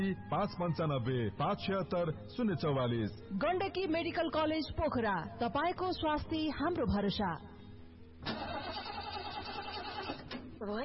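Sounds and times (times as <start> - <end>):
speech: 0.0 - 7.5, 10.6 - 10.8
car engine cranking with a failing battery: 8.2 - 10.6.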